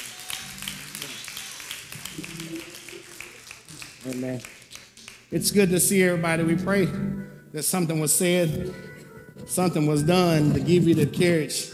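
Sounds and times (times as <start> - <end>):
crowd clapping: 0.0 - 5.4
speech: 4.0 - 4.6, 5.3 - 11.7.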